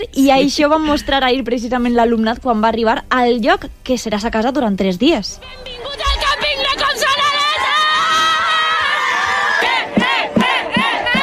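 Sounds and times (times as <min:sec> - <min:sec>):
speech: 0:00.0 - 0:06.0
crowd chanting: 0:05.4 - 0:11.2
students cheering on arrival at the Com sona l'ESO campsite, Gandia: 0:05.4 - 0:11.2.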